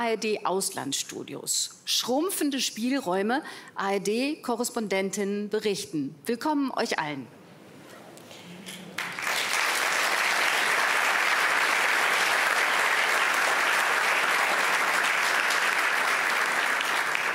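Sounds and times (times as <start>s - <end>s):
speech: 0.0s - 7.4s
live audience applauding: 8.7s - 17.3s.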